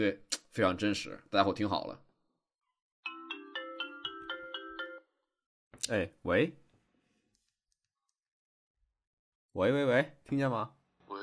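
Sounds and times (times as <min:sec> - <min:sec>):
speech: 0:00.0 - 0:02.0, 0:05.9 - 0:06.6, 0:09.6 - 0:10.8
phone call ringtone: 0:03.0 - 0:05.2.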